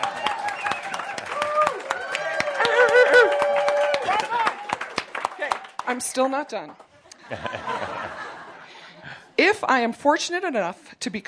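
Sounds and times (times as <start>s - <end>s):
audience cheering: 0.0s - 5.6s
speech: 5.9s - 8.4s, 9.4s - 11.2s
laughter: 7.0s - 9.2s.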